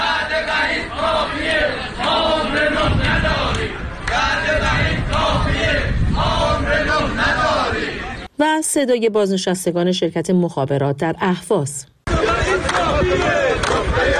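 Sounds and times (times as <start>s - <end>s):
retired telecom workers in Tabriz chanting in protest: 0.0s - 8.3s, 12.1s - 14.1s
speech: 8.6s - 12.0s.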